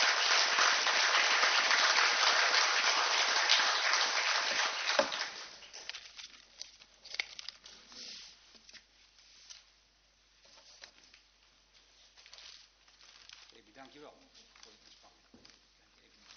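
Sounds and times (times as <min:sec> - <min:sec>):
applause: 0:00.0 - 0:05.9.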